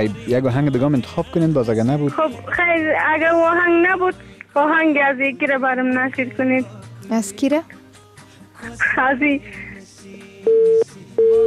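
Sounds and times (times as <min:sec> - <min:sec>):
speech: 0:00.0 - 0:07.8, 0:08.6 - 0:09.6
telephone busy tone after a listener's call dropped: 0:10.5 - 0:11.4.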